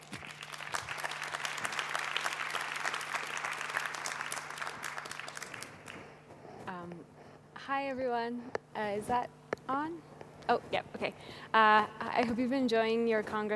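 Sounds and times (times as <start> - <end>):
audience applause: 0.0 - 6.2
speech: 7.7 - 13.5.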